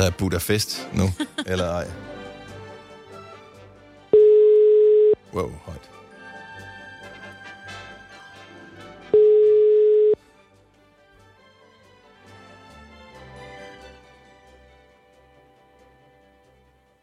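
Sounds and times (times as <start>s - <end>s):
speech: 0.0s - 2.1s, 5.3s - 5.9s
music: 0.0s - 17.0s
laughter: 1.0s - 1.9s
telephone busy tone: 4.2s - 5.2s, 9.2s - 10.2s.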